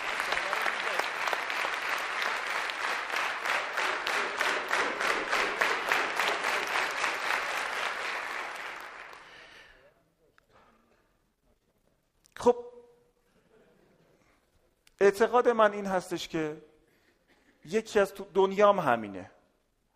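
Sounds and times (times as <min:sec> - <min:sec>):
audience applause: 0:00.0 - 0:09.7
speech: 0:15.0 - 0:16.7, 0:17.6 - 0:19.4.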